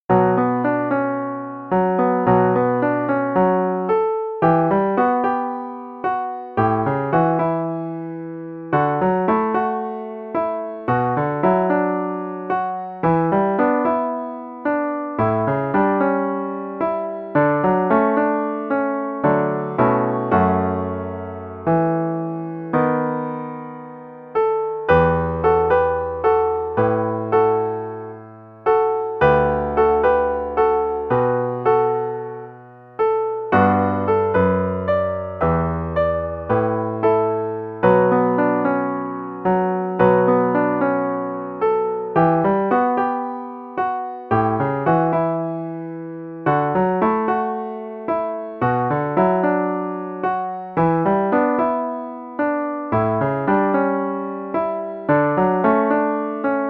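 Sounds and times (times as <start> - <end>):
piano arrangement of a theme: 0.0 - 56.6.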